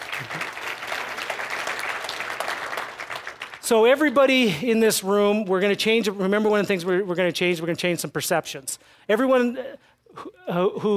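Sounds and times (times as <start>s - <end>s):
audience applause: 0.0s - 3.7s
speech: 3.7s - 10.9s.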